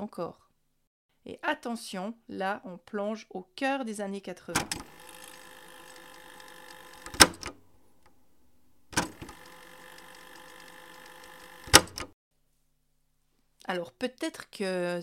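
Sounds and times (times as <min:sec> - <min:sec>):
speech: 0:00.0 - 0:00.5, 0:01.2 - 0:05.2, 0:13.7 - 0:15.0
cassette player fast-forwarding a tape: 0:04.6 - 0:12.2.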